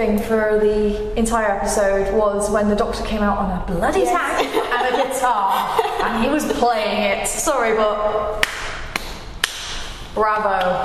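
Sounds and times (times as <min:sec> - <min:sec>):
speech: 0:00.0 - 0:08.6, 0:10.2 - 0:10.8
laughter: 0:04.2 - 0:07.2
hand clapping: 0:08.4 - 0:10.8.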